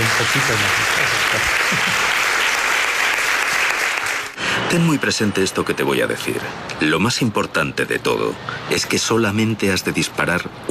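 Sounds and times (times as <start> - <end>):
applause: 0.0 - 4.4
speech: 0.2 - 2.2, 4.7 - 10.6.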